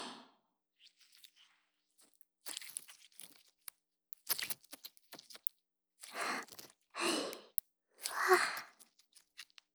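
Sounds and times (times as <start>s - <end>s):
slime being played with: 2.4s - 9.6s.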